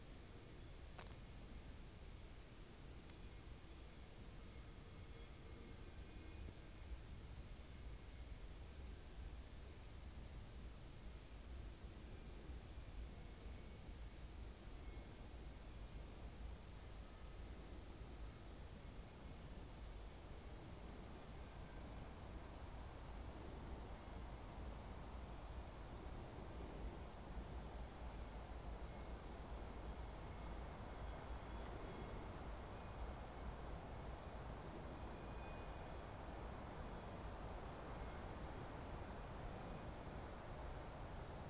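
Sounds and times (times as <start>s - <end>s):
wind at night: 0.0s - 41.4s.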